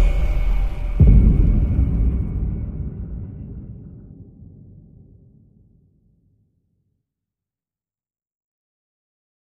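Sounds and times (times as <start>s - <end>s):
dystopian opening theme music: 0.0s - 3.9s.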